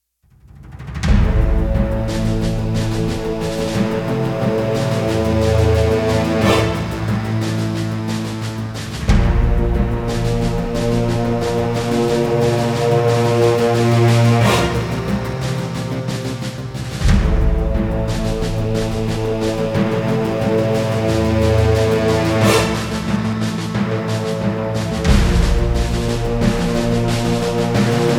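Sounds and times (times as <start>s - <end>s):
tension music: 0.3s - 28.1s.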